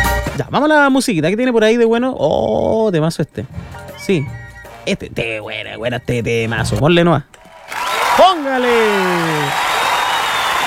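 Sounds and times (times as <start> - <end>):
speech: 0.4 - 9.7
applause sound effect: 7.4 - 10.6.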